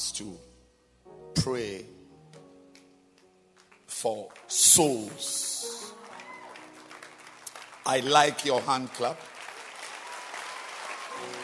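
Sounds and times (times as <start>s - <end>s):
speech: 0.0s - 0.5s, 1.4s - 2.0s, 4.0s - 6.3s, 7.9s - 9.3s
audience hand clapping: 2.7s - 11.4s.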